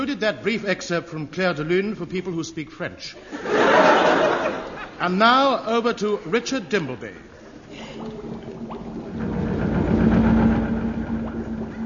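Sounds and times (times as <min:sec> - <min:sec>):
speech: 0:00.0 - 0:07.3
laughter: 0:03.2 - 0:05.0
giant Christmas pudding being machine-mixed in the great dry dock at Chatham: 0:07.7 - 0:11.8.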